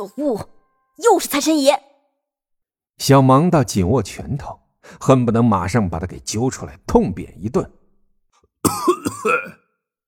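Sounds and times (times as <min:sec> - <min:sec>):
speech: 0:00.0 - 0:01.9, 0:03.0 - 0:07.8, 0:08.6 - 0:09.6
old man coughing: 0:08.6 - 0:09.7.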